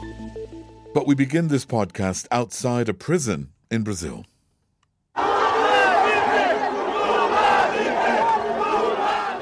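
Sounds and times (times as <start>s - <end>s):
speech: 1.0s - 4.3s
crowd of supporters cheering outside prison: 5.2s - 9.4s.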